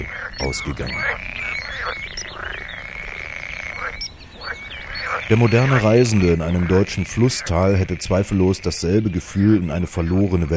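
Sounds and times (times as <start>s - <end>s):
speech: 0.0s - 1.3s, 5.3s - 10.5s
chorus of frogs croaking: 0.0s - 10.5s.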